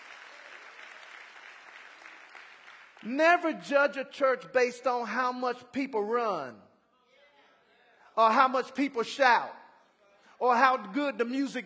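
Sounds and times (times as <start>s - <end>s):
audience hand clapping: 0.0s - 3.5s
speech: 3.0s - 6.7s, 8.2s - 9.6s, 10.4s - 11.6s.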